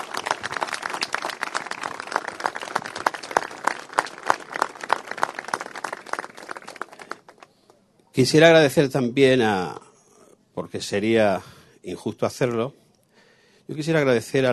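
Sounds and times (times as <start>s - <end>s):
audience applause: 0.0s - 7.4s
speech: 8.2s - 9.8s, 10.7s - 12.8s, 13.7s - 14.5s.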